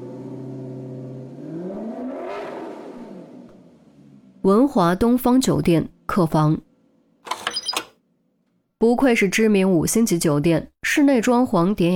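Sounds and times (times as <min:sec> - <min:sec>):
car engine idling then revving as it pulls away: 0:00.0 - 0:04.5
speech: 0:04.4 - 0:06.7, 0:08.8 - 0:11.9.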